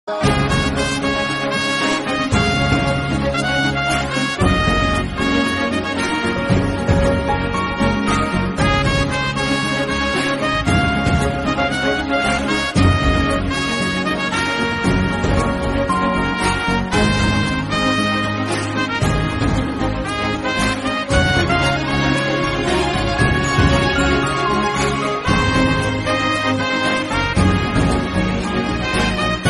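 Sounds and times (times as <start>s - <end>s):
background music: 0.0s - 29.4s.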